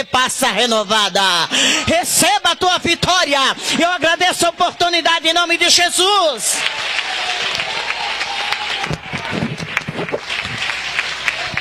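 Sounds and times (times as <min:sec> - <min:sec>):
speech: 0:00.0 - 0:07.9
voices in the crowd: 0:00.0 - 0:11.5
audience applause: 0:05.4 - 0:11.5.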